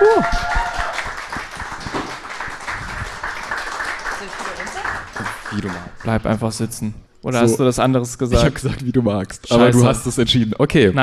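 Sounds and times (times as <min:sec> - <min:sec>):
audience applause: 0:00.0 - 0:06.5
speech: 0:05.6 - 0:11.0.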